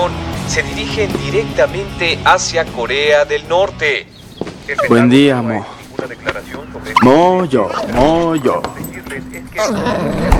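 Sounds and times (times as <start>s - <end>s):
speech: 0.1s - 10.3s
dog growling and barking: 9.6s - 10.3s.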